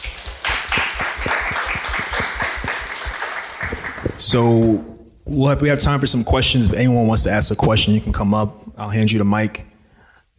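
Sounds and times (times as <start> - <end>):
audience clapping: 0.0 - 4.4
speech: 4.2 - 9.7.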